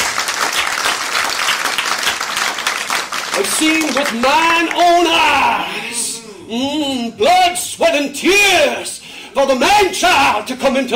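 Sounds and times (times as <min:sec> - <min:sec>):
audience applause: 0:00.0 - 0:05.4
speech: 0:03.4 - 0:10.9.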